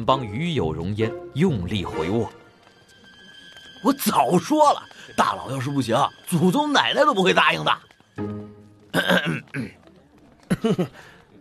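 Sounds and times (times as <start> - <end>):
speech: 0.0 - 2.4, 3.8 - 9.8, 10.5 - 11.1
cough: 8.9 - 9.8
laughter: 10.4 - 11.3.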